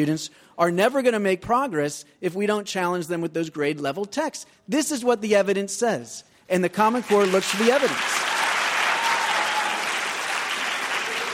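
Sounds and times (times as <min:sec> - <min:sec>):
speech: 0:00.0 - 0:08.3
audience applause at a debate on education and the Common Core: 0:07.0 - 0:11.3.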